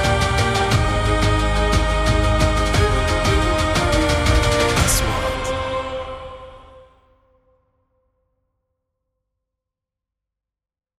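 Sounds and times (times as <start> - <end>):
epic music: 0.0 - 7.1.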